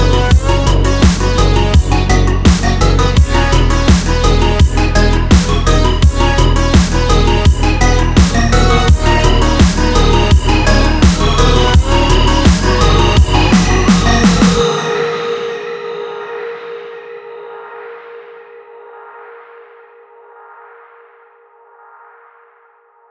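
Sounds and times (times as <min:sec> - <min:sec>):
pure analog sweeps on toms: 0:00.0 - 0:17.6.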